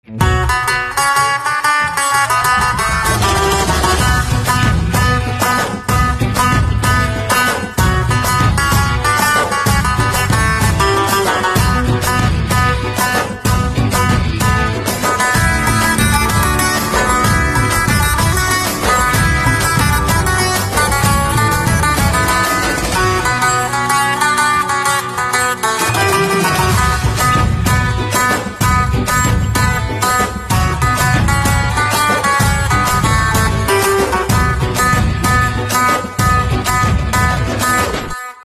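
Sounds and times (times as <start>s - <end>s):
sitar: 0.0s - 38.4s.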